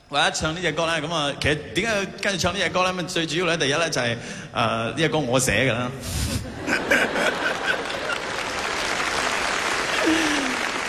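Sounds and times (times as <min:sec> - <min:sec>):
speech: 0:00.1 - 0:07.4
laughter: 0:06.3 - 0:08.6
audience clapping: 0:07.0 - 0:10.8.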